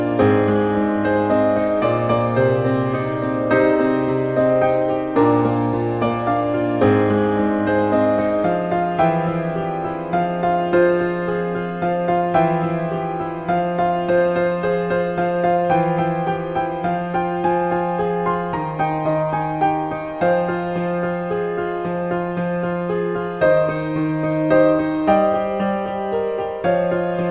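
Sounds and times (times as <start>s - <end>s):
piano piece in F minor: 0.0s - 27.2s.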